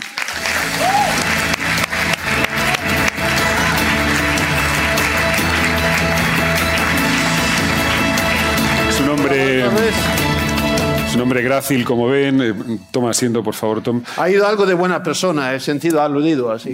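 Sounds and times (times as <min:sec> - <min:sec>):
crowd audience applause: 0:00.0 - 0:11.0
speech: 0:11.2 - 0:16.7.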